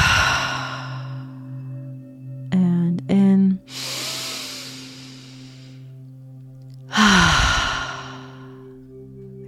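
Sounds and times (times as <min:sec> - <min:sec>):
slow deep breathing in through nose and out: 0:00.0 - 0:01.6, 0:03.7 - 0:05.9, 0:06.9 - 0:08.8
steady low drone: 0:00.0 - 0:01.8, 0:03.7 - 0:05.8, 0:06.9 - 0:08.8.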